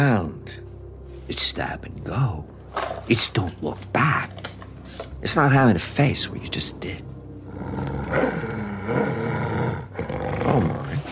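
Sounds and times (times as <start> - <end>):
speech: 0.0 - 0.6, 1.3 - 4.4, 5.2 - 8.5
mangy dog growling: 7.4 - 11.0.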